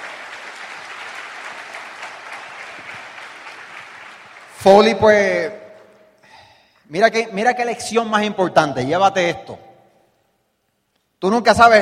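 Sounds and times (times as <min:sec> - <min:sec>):
audience applause: 0:00.0 - 0:05.2
speech: 0:04.6 - 0:05.6, 0:06.9 - 0:09.6, 0:11.2 - 0:11.8.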